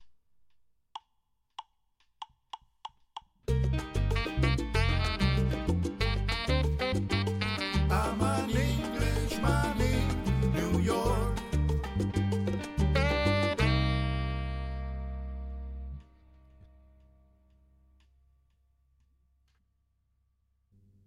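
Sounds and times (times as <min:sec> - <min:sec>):
latin music: 0:03.4 - 0:17.0.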